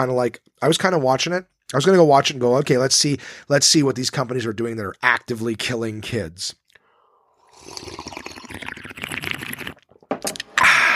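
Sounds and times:
speech: 0:00.0 - 0:06.6, 0:07.6 - 0:08.4
person slurping a drink: 0:07.2 - 0:10.9.

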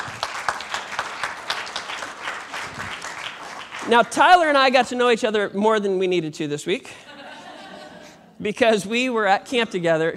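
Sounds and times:
church audience clapping to welcome someone to the stage: 0:00.0 - 0:04.6
speech: 0:03.9 - 0:07.1, 0:08.4 - 0:10.1
laughter: 0:06.9 - 0:08.3.

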